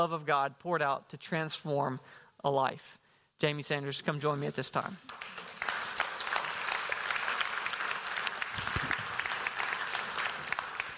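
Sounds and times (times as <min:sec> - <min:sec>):
speech: 0:00.0 - 0:05.4
audience applause: 0:05.1 - 0:10.9.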